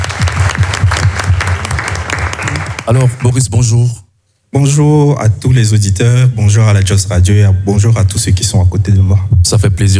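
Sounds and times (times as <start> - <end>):
studio audience applause welcoming a guest onto a radio show: 0.0 - 3.4
speech: 2.9 - 9.9.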